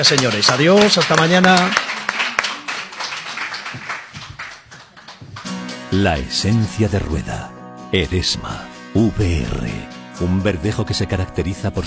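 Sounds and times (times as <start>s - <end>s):
speech: 0.0s - 1.9s, 5.9s - 11.8s
applause: 0.0s - 6.0s.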